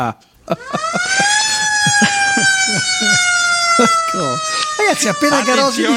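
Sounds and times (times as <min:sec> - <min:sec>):
speech: 0:00.0 - 0:02.2, 0:03.0 - 0:05.9
laughter: 0:00.4 - 0:05.9
police siren wailing: 0:00.5 - 0:05.9
several voices talking and shouting: 0:01.0 - 0:05.9.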